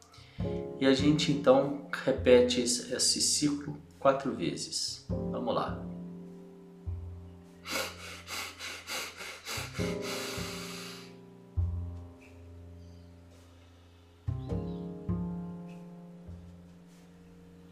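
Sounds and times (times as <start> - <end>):
quiet music: 0.0 - 17.6
speech: 0.8 - 6.0, 9.8 - 10.2
quick sniffing breaths through the nose in a breathing exercise: 7.6 - 11.2.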